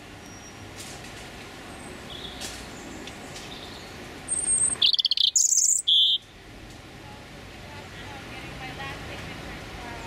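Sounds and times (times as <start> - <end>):
male European robin Erithacus rubecula singing territorial song: 1.7 - 6.3.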